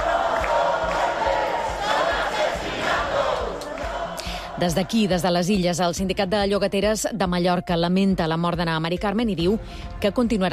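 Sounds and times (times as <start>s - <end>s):
protest crowd shouting: 0.0s - 5.2s
speech: 4.6s - 10.5s.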